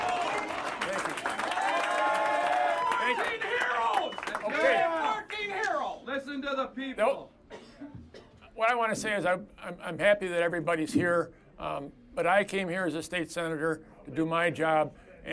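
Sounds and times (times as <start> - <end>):
crowd applauding: 0.0 - 5.8
cheering and chattering voices: 0.0 - 6.0
speech: 6.3 - 7.9, 8.6 - 15.3.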